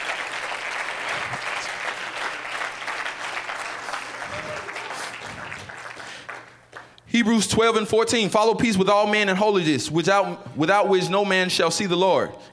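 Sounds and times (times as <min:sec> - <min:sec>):
audience clapping hands: 0:00.0 - 0:07.0
speech: 0:07.2 - 0:12.5.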